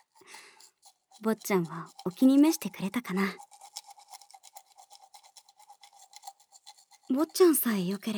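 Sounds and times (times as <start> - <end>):
finger toothbrush scrubbing teeth: 0.0 - 8.1
speech: 1.2 - 3.5, 7.1 - 8.1.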